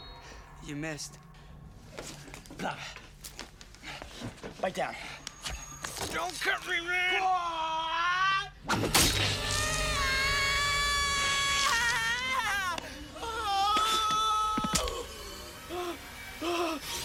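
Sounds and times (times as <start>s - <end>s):
speech: 0.7s - 1.3s, 2.6s - 3.0s, 4.2s - 5.2s, 6.1s - 7.7s, 8.7s - 9.4s
man screaming: 9.5s - 16.8s.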